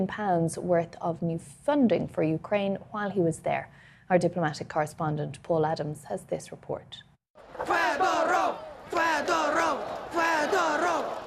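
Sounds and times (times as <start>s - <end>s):
speech: 0.0s - 8.6s
crowd chanting in a city square in Kiev: 7.4s - 11.2s.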